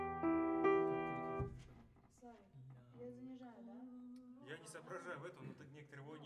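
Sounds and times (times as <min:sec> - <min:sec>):
piano: 0:00.0 - 0:01.6.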